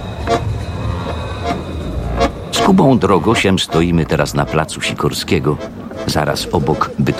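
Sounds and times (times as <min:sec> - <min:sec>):
trams passing by at a city stop: 0:00.0 - 0:07.1
speech: 0:02.7 - 0:07.1.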